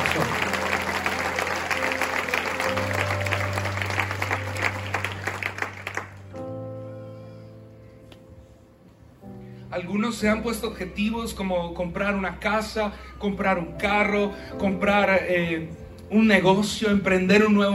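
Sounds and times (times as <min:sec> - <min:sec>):
audience applauding: 0:00.0 - 0:06.4
speech: 0:09.8 - 0:17.7.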